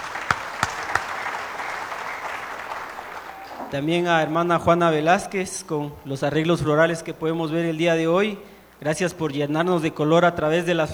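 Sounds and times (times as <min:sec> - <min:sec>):
audience applause: 0:00.0 - 0:03.8
sharper louder claps: 0:00.0 - 0:03.8
speech: 0:03.7 - 0:10.9.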